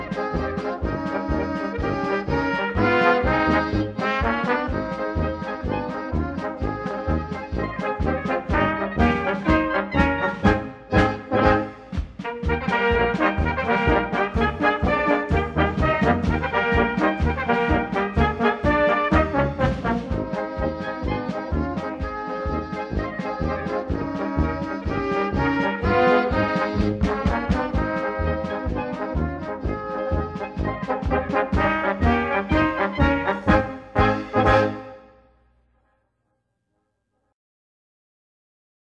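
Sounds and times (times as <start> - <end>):
oompah band playing polka: 0.0 - 35.2.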